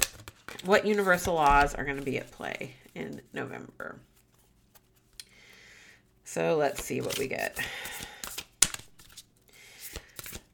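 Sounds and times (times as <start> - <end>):
tarot cards shuffling: 0.0 - 2.4, 6.7 - 10.5
speech: 0.6 - 4.1, 6.3 - 8.0.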